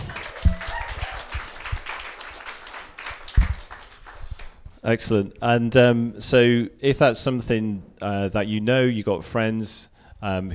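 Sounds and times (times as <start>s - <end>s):
audience clapping: 0.0s - 4.6s
speech: 4.8s - 10.5s.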